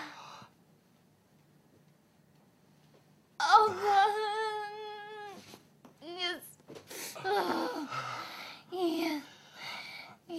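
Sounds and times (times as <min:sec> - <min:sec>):
person moaning: 0:03.4 - 0:05.4, 0:07.2 - 0:09.3.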